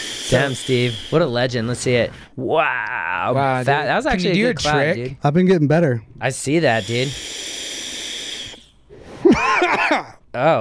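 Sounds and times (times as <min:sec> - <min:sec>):
speech: 0:00.3 - 0:07.3, 0:09.4 - 0:10.5
person coughing after vaping: 0:09.3 - 0:10.2.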